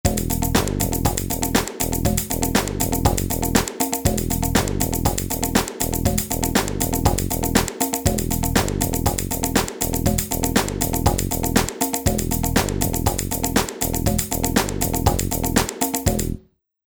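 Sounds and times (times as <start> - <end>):
house music: 0.0 - 16.4.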